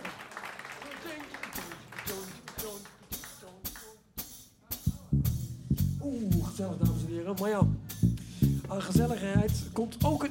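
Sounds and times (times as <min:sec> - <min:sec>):
sharp evenly spaced claps: 0:00.0 - 0:04.0
speech: 0:06.1 - 0:08.1, 0:08.7 - 0:10.2.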